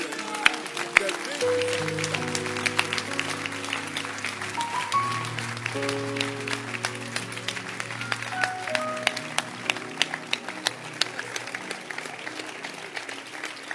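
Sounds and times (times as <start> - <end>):
audience clapping hands: 0.0 - 13.7
sustained organ-like chords: 0.7 - 12.3.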